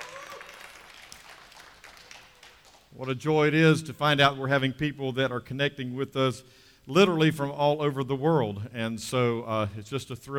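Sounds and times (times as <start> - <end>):
faint audience clapping: 0.0 - 3.2
speech: 3.0 - 10.3.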